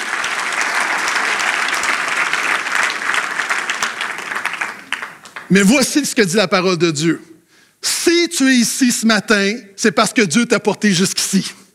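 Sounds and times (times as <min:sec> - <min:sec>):
audience applauding: 0:00.0 - 0:06.0
speech: 0:05.5 - 0:07.3, 0:08.4 - 0:11.6.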